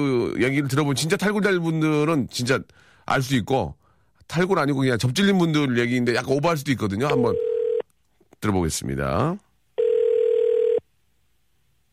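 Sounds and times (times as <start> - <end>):
speech: 0.0 - 7.5, 8.4 - 9.4
telephone tone: 7.1 - 7.8, 9.8 - 10.8.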